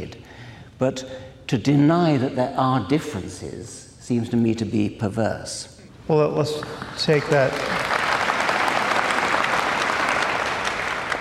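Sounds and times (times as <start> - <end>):
speech: 0.8 - 7.9
audience applause: 6.6 - 11.2.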